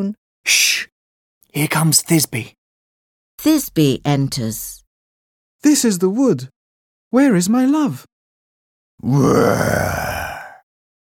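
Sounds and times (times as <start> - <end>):
speech: 0.0 - 0.9, 1.5 - 2.6, 3.4 - 4.8, 5.6 - 8.1, 9.0 - 10.1
person imitating a lion's roar: 9.0 - 10.6.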